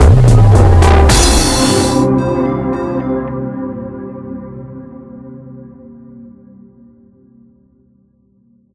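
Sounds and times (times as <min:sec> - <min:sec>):
transition sound: 0:00.0 - 0:02.4.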